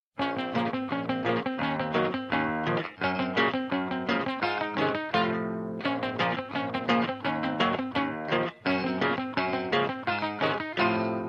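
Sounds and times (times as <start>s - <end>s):
guitar: 0.2s - 11.2s.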